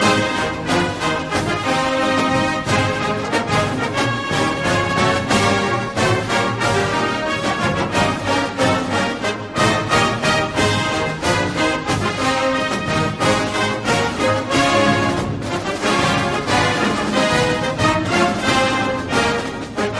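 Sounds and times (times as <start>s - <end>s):
song: 0.0s - 19.9s.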